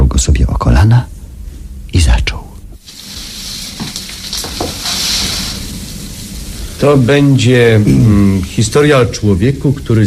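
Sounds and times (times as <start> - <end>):
speech: 0.2 - 1.1, 6.8 - 10.0
wood fire crackling in a fireplace: 2.8 - 10.0.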